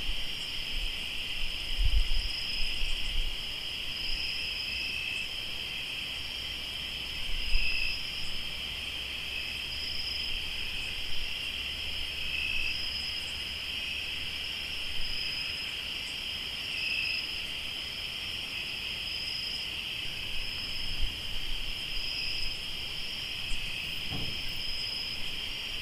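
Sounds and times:
crickets trilling in a chorus: 0.0 - 25.7
soft thump: 24.1 - 24.5.

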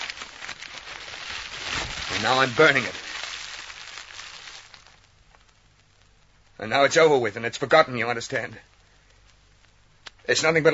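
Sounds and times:
paper picture being torn up: 0.0 - 5.0
speech: 2.2 - 3.0, 6.6 - 8.7, 10.3 - 10.7.

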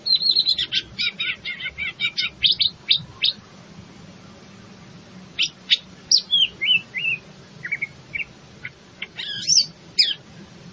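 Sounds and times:
leafbird cucak ijo singing rapid high chatter and twisting whistled notes: 0.0 - 3.4, 5.4 - 10.3.

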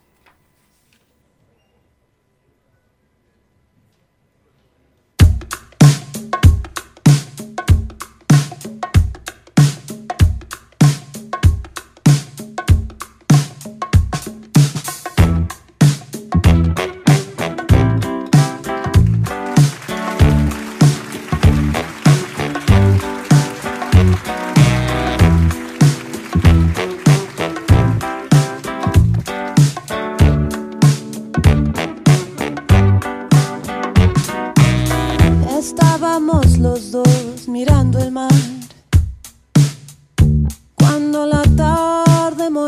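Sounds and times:
steady punchy rhythmic beat: 5.2 - 42.6
rock band playing with guitars bass and drums: 15.0 - 37.4.

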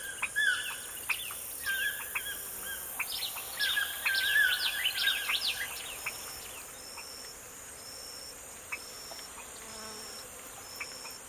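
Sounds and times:
morning birdsong in the forest: 0.0 - 7.2.

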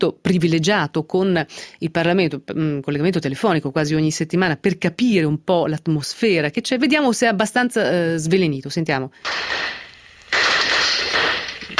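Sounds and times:
speech: 0.0 - 10.5
gunfire: 9.2 - 11.7.

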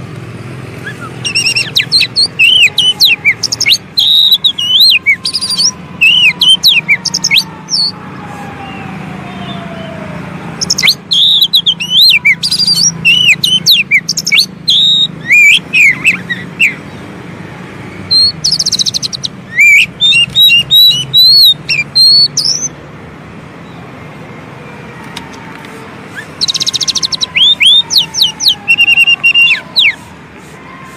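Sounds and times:
Oriental magpie-robin singing: 0.8 - 8.0, 10.6 - 17.1, 18.1 - 22.8, 26.1 - 30.1.

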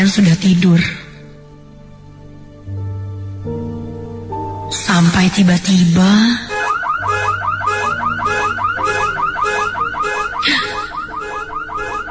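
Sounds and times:
speech: 0.0 - 1.1, 5.0 - 6.5
car alarm blaring loudly: 6.5 - 12.0.

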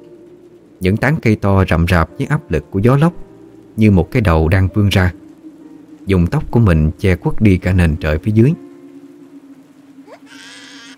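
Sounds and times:
low hum: 0.0 - 10.9
speech: 0.8 - 5.2, 6.0 - 8.6
young child crying: 10.1 - 10.9.

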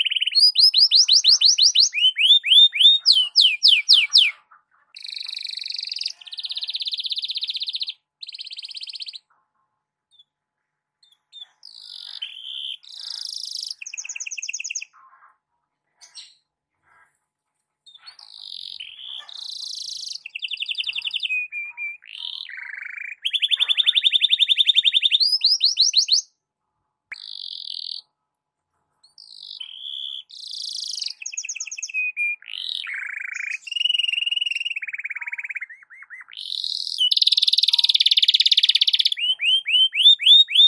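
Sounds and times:
canary song: 0.0 - 9.4, 11.0 - 15.4, 17.9 - 26.4, 27.1 - 28.2, 29.0 - 40.6.

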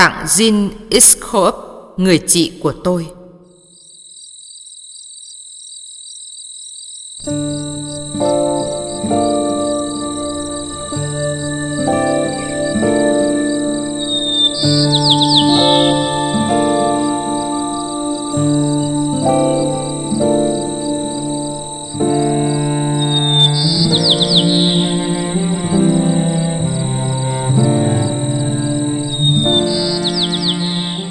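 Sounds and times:
speech: 0.0 - 3.2, 7.2 - 9.3
high trilling bird chirps: 3.3 - 25.6, 28.1 - 31.0
sustained melodic music: 7.3 - 31.0.

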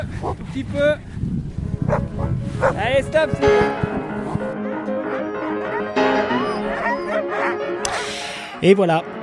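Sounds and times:
pack of sled dogs barking, yipping and whining on a snowy plateau: 0.1 - 0.5, 1.8 - 8.0
speech: 0.6 - 1.2, 2.6 - 4.0, 8.1 - 9.2.

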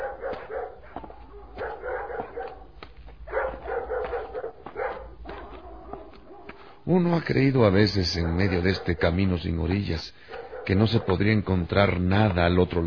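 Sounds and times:
dogs barking and yipping: 0.0 - 6.8, 7.7 - 11.4
speech: 6.9 - 12.8.

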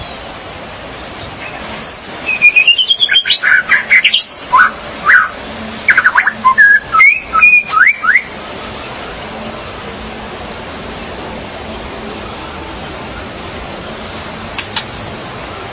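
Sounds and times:
magpie-robin or shama song: 1.2 - 9.0.

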